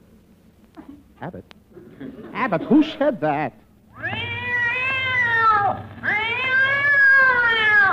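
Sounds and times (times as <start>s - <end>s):
faint low hum: 0.0s - 7.9s
speech: 1.2s - 4.2s
cat yowling after tail is stepped on: 3.9s - 7.9s.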